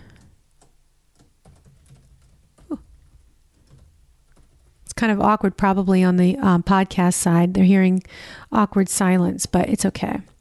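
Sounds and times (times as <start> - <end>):
typing on a computer keyboard: 0.1 - 4.7
speech: 5.0 - 10.3.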